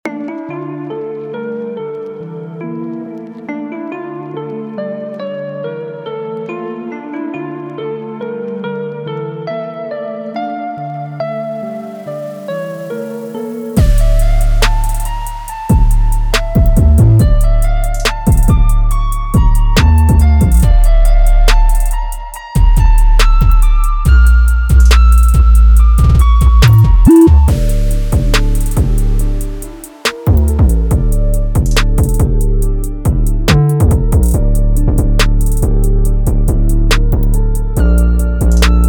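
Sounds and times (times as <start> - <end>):
808 drum machine beat: 13.8 - 38.8.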